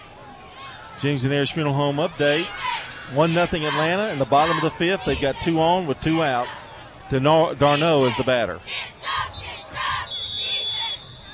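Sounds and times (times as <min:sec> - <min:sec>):
speech: 0:01.0 - 0:08.9
referee's whistle at basketball game: 0:09.2 - 0:11.3.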